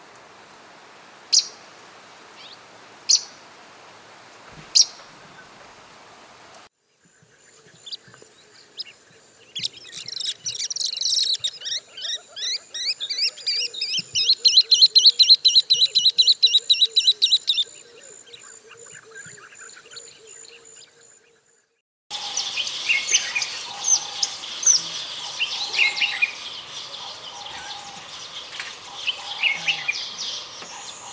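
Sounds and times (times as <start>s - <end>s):
quiet background hiss: 0.0s - 18.8s, 22.1s - 31.1s
bird calls and song: 6.8s - 31.1s.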